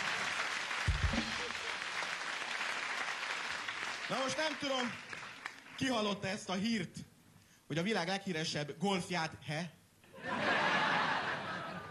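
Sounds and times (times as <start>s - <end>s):
audience applause: 0.0s - 5.8s
speech: 4.1s - 5.0s, 5.8s - 7.0s, 7.7s - 10.4s
laughter: 10.2s - 11.8s.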